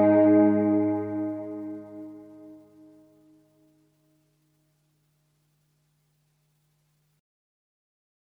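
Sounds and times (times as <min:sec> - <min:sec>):
synth with Yamaha SPX90 hall reverb: 0:00.0 - 0:02.5.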